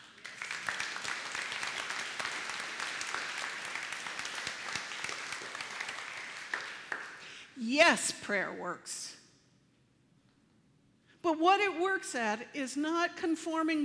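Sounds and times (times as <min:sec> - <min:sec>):
audience applause: 0:00.0 - 0:07.2
speech: 0:07.6 - 0:09.2, 0:11.3 - 0:13.8.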